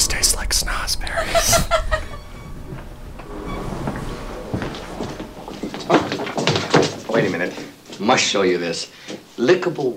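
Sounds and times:
laughter: 0:01.1 - 0:02.2
squeaky elevator door: 0:01.5 - 0:07.8
speech: 0:07.2 - 0:09.9.

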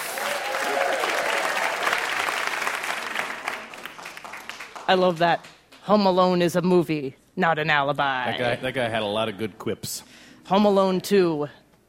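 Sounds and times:
audience round of applause: 0:00.0 - 0:05.2
speech: 0:04.9 - 0:11.6.

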